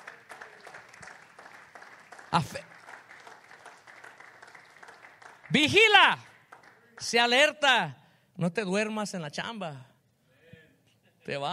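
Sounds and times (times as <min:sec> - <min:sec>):
audience applauding: 0:00.0 - 0:07.5
speech: 0:02.3 - 0:02.7, 0:05.5 - 0:06.3, 0:07.0 - 0:09.9, 0:11.2 - 0:11.5.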